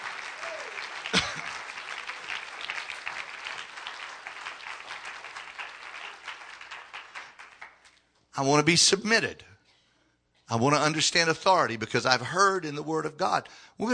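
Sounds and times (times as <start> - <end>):
audience clapping hands: 0.0 - 8.1
speech: 8.4 - 9.5, 10.5 - 13.9.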